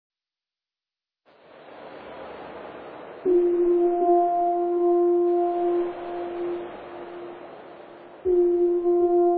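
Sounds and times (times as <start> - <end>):
rolling wave sound in F minor: 1.3 - 9.2.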